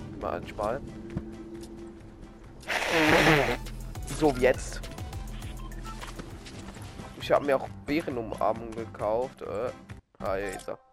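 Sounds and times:
speech: 0.2 - 1.2, 2.9 - 4.9, 7.3 - 10.8
nose blowing: 2.6 - 3.6.

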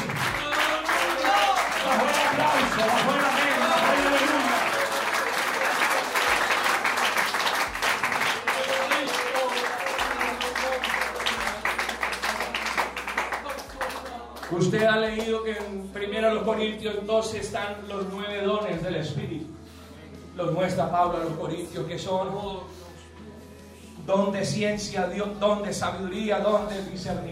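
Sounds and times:
audience applauding: 0.0 - 15.7
speech: 15.0 - 19.6, 20.4 - 22.7, 24.1 - 27.3.

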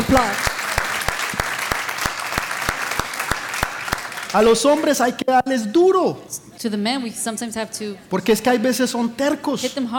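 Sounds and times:
loud applause from audience: 0.0 - 4.9
speech: 0.1 - 0.5, 4.3 - 9.9.

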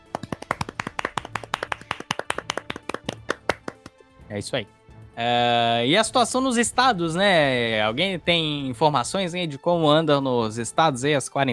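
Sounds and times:
hands clapping in applause: 0.0 - 4.0
speech: 4.3 - 11.5.

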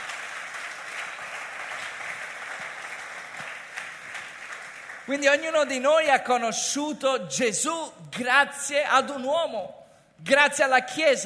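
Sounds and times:
audience applause: 0.0 - 5.2
speech: 5.1 - 11.2.

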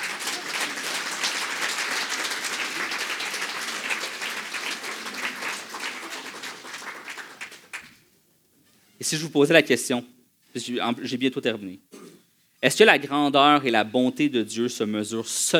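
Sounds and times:
audience applauding: 0.0 - 8.0
speech: 9.0 - 11.9, 12.6 - 15.5.

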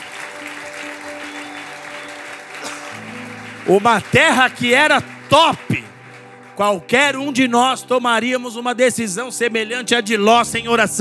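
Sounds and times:
audience applauding: 0.0 - 7.6
speech: 3.7 - 5.9, 6.6 - 11.0.

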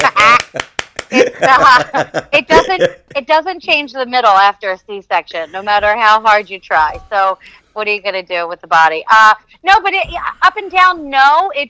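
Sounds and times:
hand claps: 0.0 - 1.3
people laughing: 0.0 - 3.8
speech: 0.5 - 11.6.

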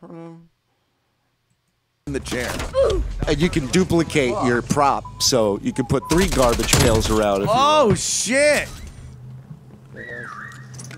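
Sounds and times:
speech: 2.2 - 8.8
video game whistle signaling a nearby player: 10.0 - 10.8.

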